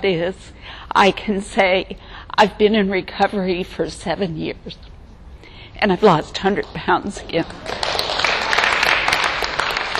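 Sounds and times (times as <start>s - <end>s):
speech: 0.0s - 4.9s, 5.8s - 7.8s
audience clapping through a talk about recovery: 6.6s - 9.9s.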